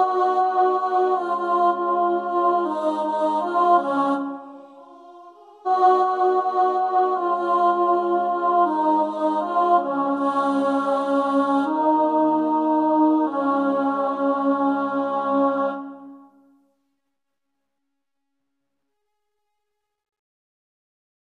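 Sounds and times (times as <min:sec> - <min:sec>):
choir with alto singing: 0:00.0 - 0:16.4.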